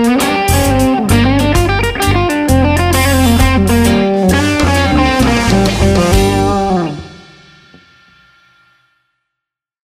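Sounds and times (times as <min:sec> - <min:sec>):
overdriven amplified guitar: 0:00.0 - 0:07.9.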